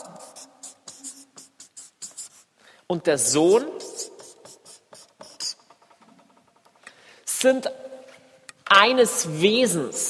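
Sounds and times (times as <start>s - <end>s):
scratchy handwriting strokes: 0.0s - 2.6s, 3.2s - 6.3s
speech: 2.9s - 3.9s, 7.4s - 7.8s, 8.7s - 10.0s.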